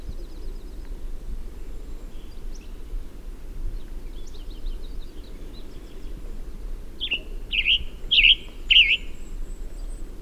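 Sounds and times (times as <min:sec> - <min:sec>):
Western tanager burry chirps: 0:07.0 - 0:09.4.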